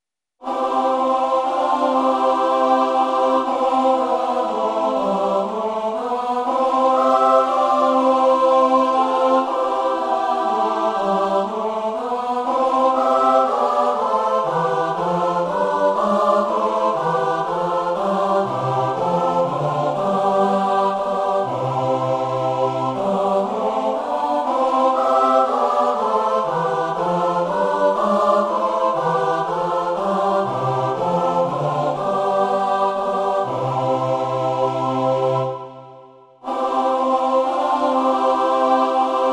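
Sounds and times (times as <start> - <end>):
SATB choir singing: 0.4 - 39.3.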